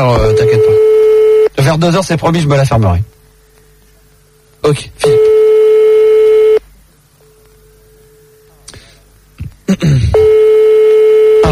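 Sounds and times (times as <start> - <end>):
speech: 0.0 - 0.8, 1.7 - 3.2, 4.6 - 5.5
telephone ringing tone on the line: 0.2 - 1.5, 5.0 - 6.6, 10.2 - 11.5.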